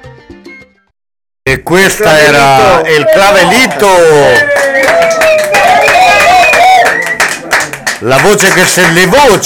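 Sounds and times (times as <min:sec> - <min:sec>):
speech: 0:01.5 - 0:06.0, 0:08.0 - 0:09.4
crowd cheering: 0:01.8 - 0:09.4
live crowd applauding: 0:02.6 - 0:09.4.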